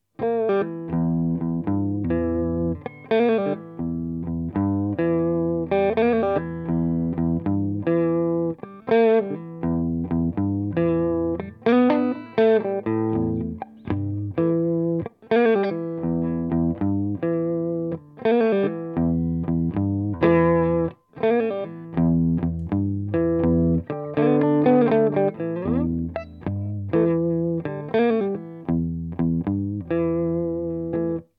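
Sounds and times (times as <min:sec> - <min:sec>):
blues music: 0:00.2 - 0:31.3.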